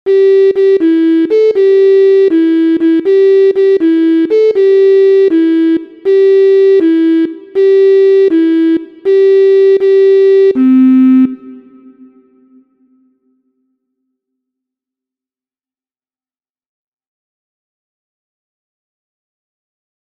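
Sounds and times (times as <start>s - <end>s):
MIDI music: 0.1s - 13.0s.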